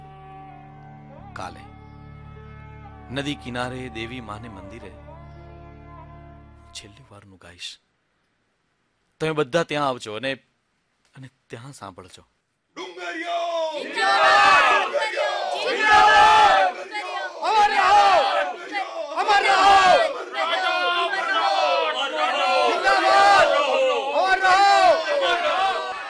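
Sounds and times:
speech: 1.4s - 1.8s, 3.1s - 5.1s, 6.8s - 7.8s, 9.2s - 10.5s, 11.2s - 12.3s, 13.2s - 14.4s
large crowd shouting at a river bank near a goddess temple: 12.8s - 26.0s.

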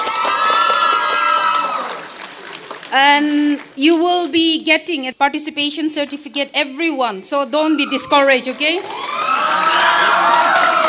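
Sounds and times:
audience applause: 0.0s - 3.0s, 7.9s - 10.8s
speech: 2.9s - 9.1s.

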